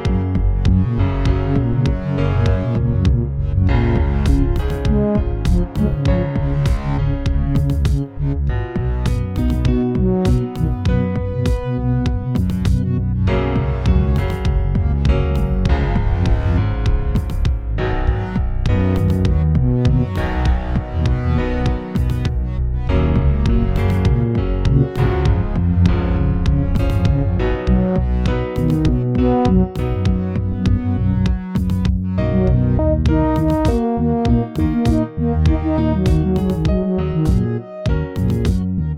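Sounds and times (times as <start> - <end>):
piano playing: 0.0 - 38.9.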